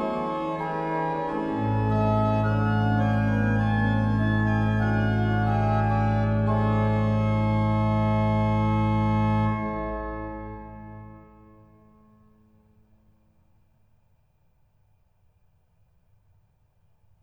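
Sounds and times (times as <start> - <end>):
organ prelude and fugue from Bohemia: 0.0 - 11.7.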